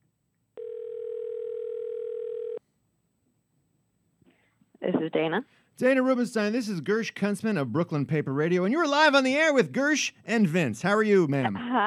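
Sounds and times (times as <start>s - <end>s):
low noise: 0.1s - 11.8s
telephone dial tone: 0.6s - 2.6s
speech: 4.8s - 11.8s.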